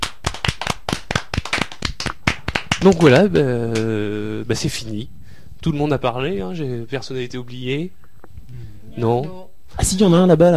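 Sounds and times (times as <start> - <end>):
audience clapping in support of a speaker at a gathering: 0.0 - 3.9
speech: 2.8 - 10.5.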